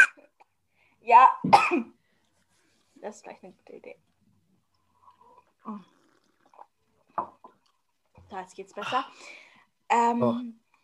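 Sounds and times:
speech: 1.1s - 2.0s, 3.0s - 4.1s, 5.6s - 6.0s, 8.3s - 10.6s
person slurping a drink: 4.8s - 7.8s.

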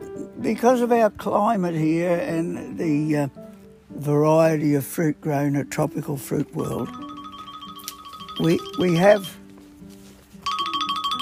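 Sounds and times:
speech: 0.4s - 3.4s, 4.0s - 7.0s, 8.4s - 9.4s
phone ringing with an electronic ringtone: 6.7s - 9.4s, 10.4s - 11.1s.

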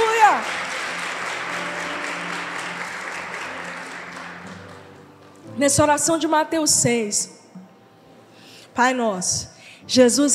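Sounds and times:
audience applauding: 0.0s - 5.5s
speech: 5.6s - 7.4s, 8.8s - 10.3s.

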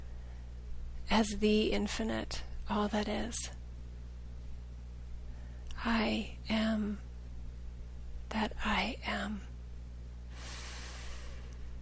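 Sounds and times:
low steady hum: 0.0s - 11.7s
speech: 1.1s - 3.6s, 5.8s - 7.1s, 8.3s - 9.5s
deep breath: 10.3s - 11.7s.

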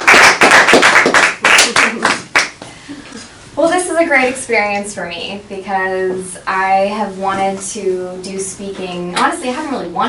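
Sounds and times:
round of applause: 0.0s - 2.6s
speech: 4.0s - 10.0s.

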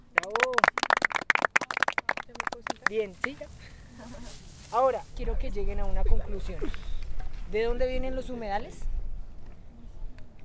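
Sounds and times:
audience applause: 0.0s - 2.9s
speech: 2.9s - 6.9s, 7.5s - 8.9s.

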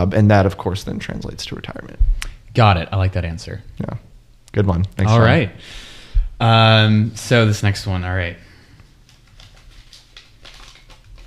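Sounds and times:
speech: 0.0s - 8.4s
paper crinkling: 8.9s - 11.2s.

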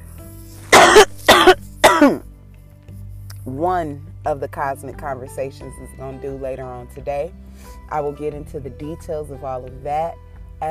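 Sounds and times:
person coughing and choking after smoking premium organic hemp: 0.7s - 2.2s
speech: 1.0s - 2.2s, 3.6s - 10.6s.

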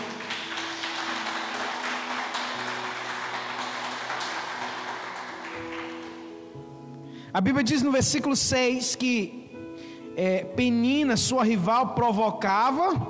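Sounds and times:
audience applauding: 0.0s - 6.5s
speech: 7.4s - 9.4s, 10.2s - 13.0s.

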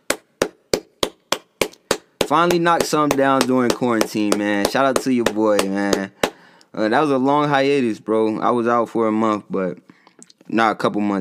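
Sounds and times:
person clapping hands: 0.0s - 6.4s
speech: 2.3s - 6.2s, 6.8s - 9.9s, 10.5s - 11.2s.

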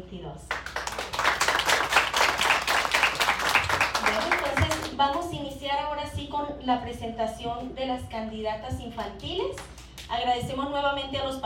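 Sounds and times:
speech: 0.0s - 0.6s, 5.0s - 11.4s
applause for the outgoing festival representative at a Fiestas de las Flores candidate presentation: 0.7s - 4.9s.

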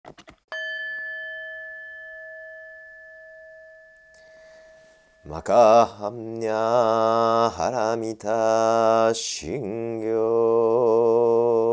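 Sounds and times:
Buddhist kin singing bowl struck: 0.5s - 5.9s
speech: 5.2s - 11.4s.

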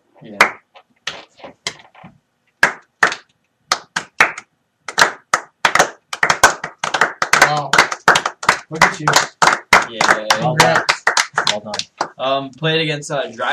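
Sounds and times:
speech: 0.2s - 0.6s, 8.7s - 13.5s
slow clap: 2.6s - 12.2s.

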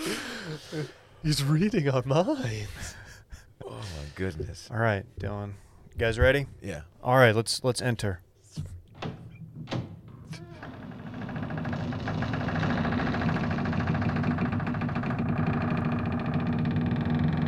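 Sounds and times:
speech: 0.5s - 3.0s, 3.7s - 8.8s
door creaking open: 8.9s - 17.4s.

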